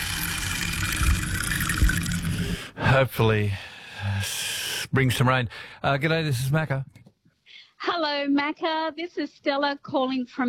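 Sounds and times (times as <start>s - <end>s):
rain stick: 0.0s - 2.6s
speech: 3.0s - 7.0s, 7.9s - 10.4s.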